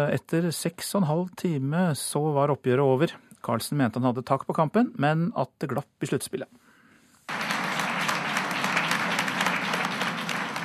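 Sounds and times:
speech: 0.0s - 6.6s
press applauding: 7.3s - 10.6s.

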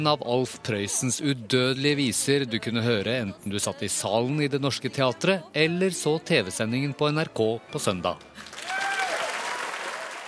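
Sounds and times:
speech: 0.0s - 8.5s
theatre audience applause: 8.4s - 10.2s.

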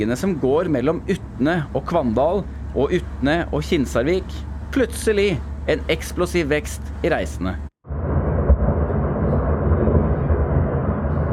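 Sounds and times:
speech: 0.0s - 7.7s
rockslide crashing down across the fjord: 7.9s - 11.3s.

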